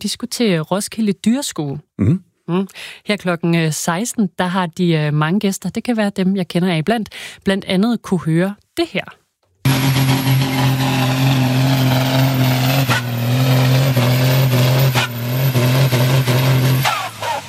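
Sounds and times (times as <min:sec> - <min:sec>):
speech: 0:00.0 - 0:10.2
tractor pulling competition engine revving: 0:09.6 - 0:17.4.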